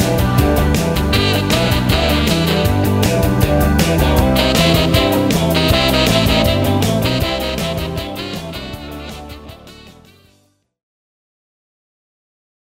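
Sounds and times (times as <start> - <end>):
saxophone: 0.8 - 10.5.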